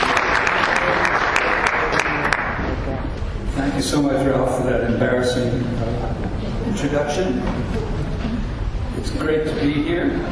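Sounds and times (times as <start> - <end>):
audience applause welcoming a speaker at a teach-in: 0.0 - 3.0
speech: 3.6 - 8.1, 9.0 - 10.2.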